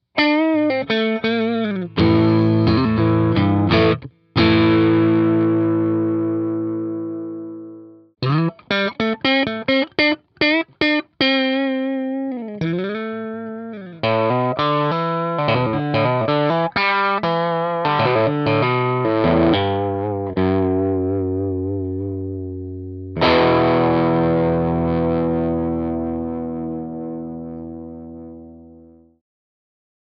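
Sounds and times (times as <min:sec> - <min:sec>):
distorted amplifier with middle setting: 0:00.0 - 0:29.2.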